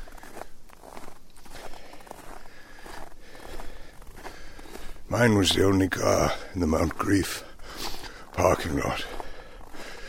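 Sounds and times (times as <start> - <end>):
rustling ground noise: 0.0 - 10.0
slow footsteps trudging uphill: 0.0 - 10.0
speech: 5.1 - 7.5, 8.4 - 9.2.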